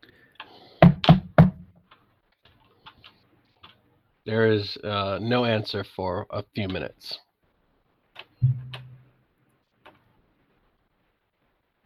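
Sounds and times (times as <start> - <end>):
knocking on a door: 0.8 - 1.7, 8.4 - 9.0
speech: 4.2 - 7.2.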